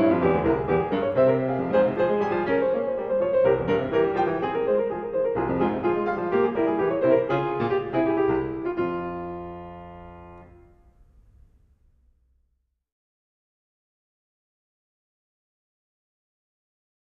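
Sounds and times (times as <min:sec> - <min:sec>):
keyboard prelude and fugue in F minor: 0:00.0 - 0:10.8.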